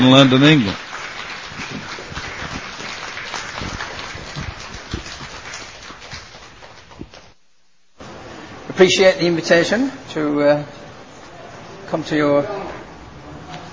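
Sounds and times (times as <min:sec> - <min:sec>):
speech: 0:00.0 - 0:00.8, 0:08.8 - 0:10.8, 0:11.9 - 0:12.6
conference audience applause welcoming a speaker: 0:00.0 - 0:07.4.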